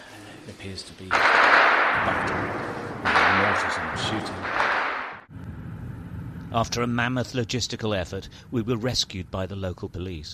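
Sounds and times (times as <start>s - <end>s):
speech: 0.5s - 4.7s, 6.5s - 10.3s
gunfire outside a garage in Ukraine: 1.1s - 5.3s.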